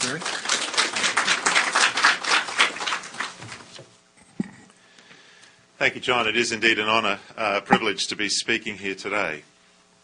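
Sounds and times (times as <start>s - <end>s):
audience applause welcoming a guest speaker: 0.0s - 3.7s
speech: 0.1s - 0.4s, 5.8s - 9.5s.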